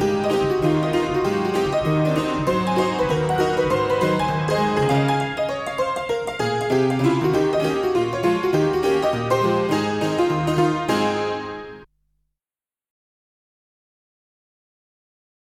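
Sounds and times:
saloon piano: 0:00.0 - 0:11.9.

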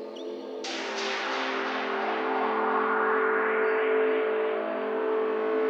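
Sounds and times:
hard progressive full-on psytrance remix: 0:00.1 - 0:05.6.

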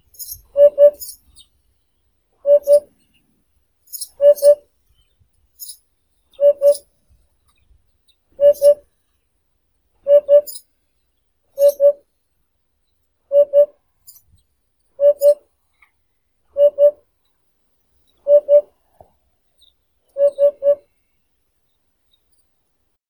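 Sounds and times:
hoopoe Upupa epops calling: 0:00.5 - 0:01.1, 0:02.5 - 0:02.9, 0:04.2 - 0:04.6, 0:06.4 - 0:06.8, 0:08.4 - 0:08.8, 0:10.1 - 0:10.6, 0:13.3 - 0:13.8, 0:15.0 - 0:15.4, 0:16.6 - 0:17.0, 0:18.3 - 0:18.7, 0:20.2 - 0:20.8.

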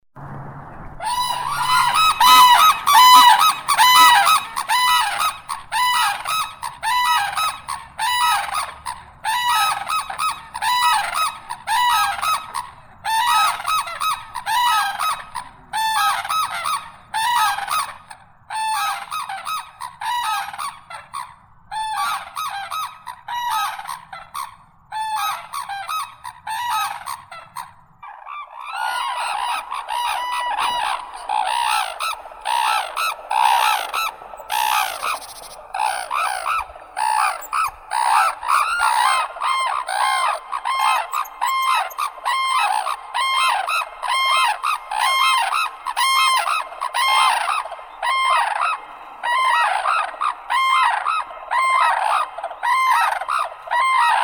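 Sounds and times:
red-crowned crane Grus japonensis: 0:01.0 - 0:54.2.

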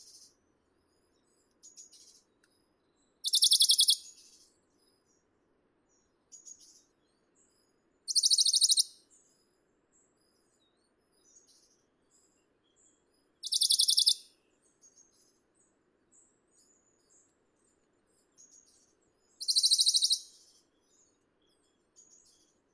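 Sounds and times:
Bonelli's warbler Phylloscopus bonelli singing: 0:03.2 - 0:04.2, 0:08.1 - 0:08.9, 0:13.4 - 0:14.2, 0:19.4 - 0:20.4.

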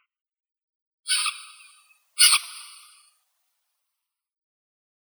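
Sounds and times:
common snipe Gallinago gallinago calling: 0:01.1 - 0:03.0.

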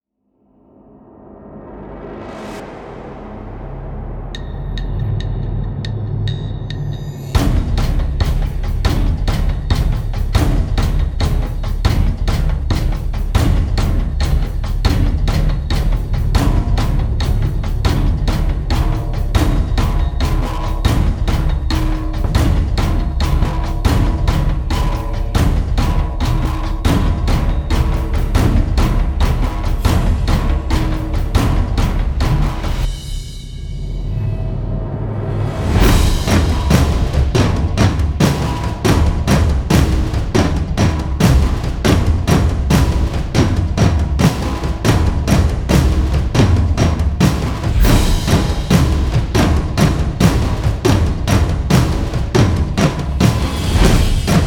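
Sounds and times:
drum effects: 0:01.9 - 0:54.4.

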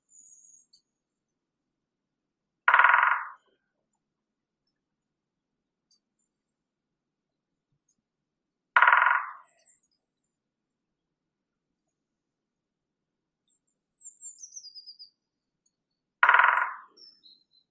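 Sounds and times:
great spotted woodpecker Dendrocopos major: 0:02.7 - 0:03.5, 0:08.8 - 0:09.9, 0:16.2 - 0:17.6.

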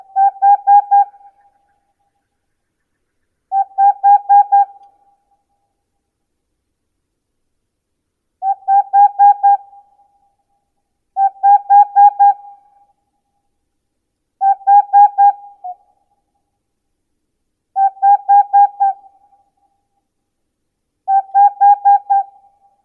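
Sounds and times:
Aegolius funereus: 0:00.0 - 0:05.2, 0:08.4 - 0:10.0, 0:11.2 - 0:12.9, 0:14.4 - 0:16.0, 0:17.8 - 0:19.4, 0:21.1 - 0:22.8.

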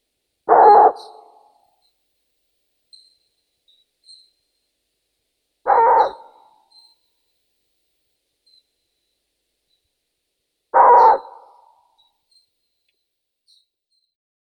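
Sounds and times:
Asio otus long-eared owl: 0:00.5 - 0:01.6, 0:05.7 - 0:07.0, 0:10.8 - 0:12.0
nature sounds: 0:00.5 - 0:02.1, 0:05.7 - 0:07.1, 0:10.8 - 0:12.5.

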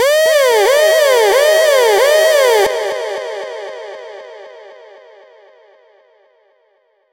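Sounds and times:
siren: 0:00.0 - 0:03.8.

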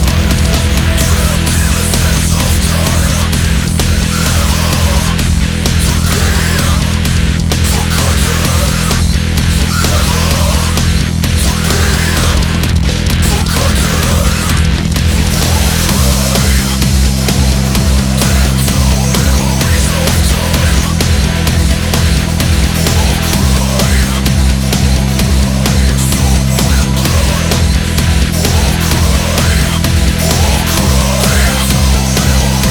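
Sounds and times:
remixed music: 0:00.0 - 0:32.6.

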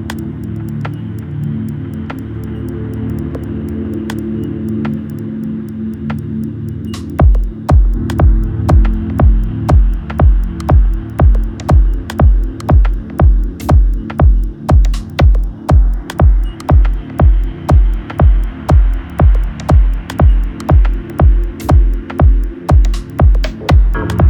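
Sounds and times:
dub music: 0:06.9 - 0:24.2.

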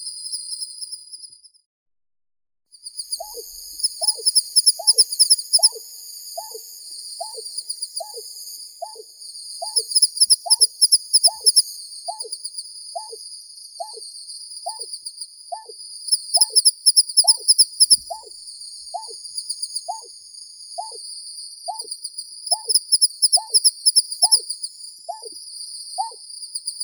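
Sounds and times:
greater painted snipe Rostratula benghalensis calling: 0:03.2 - 0:05.8, 0:06.4 - 0:12.4, 0:13.0 - 0:13.2, 0:13.8 - 0:14.0, 0:14.6 - 0:14.9, 0:15.5 - 0:19.2, 0:19.9 - 0:20.2, 0:20.8 - 0:21.0, 0:21.7 - 0:21.9, 0:22.5 - 0:24.5, 0:25.1 - 0:25.4, 0:26.0 - 0:26.2.

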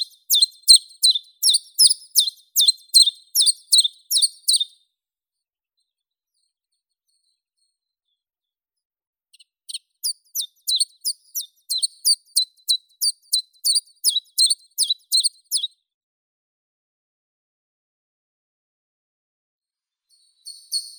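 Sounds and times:
chiffchaff Phylloscopus collybita singing: 0:00.0 - 0:04.7, 0:10.0 - 0:15.7.

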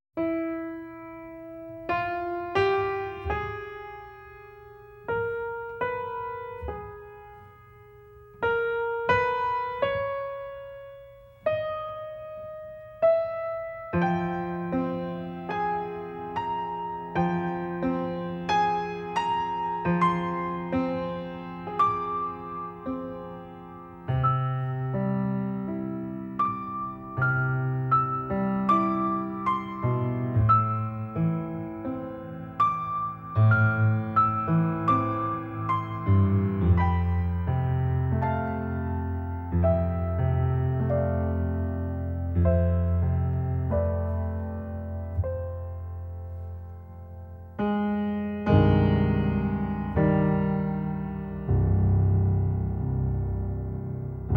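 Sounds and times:
piano: 0:00.0 - 0:54.3.

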